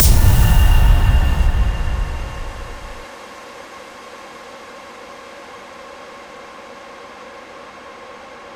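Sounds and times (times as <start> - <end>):
reversed menu spawn sound effect: 0.0 - 3.0.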